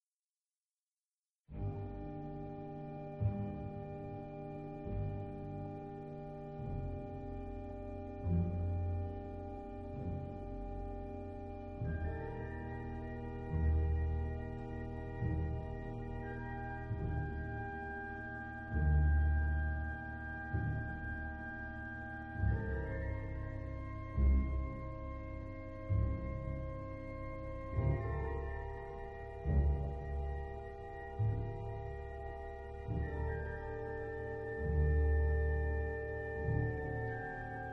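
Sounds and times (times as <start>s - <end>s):
slow classical piece: 1.5s - 37.7s.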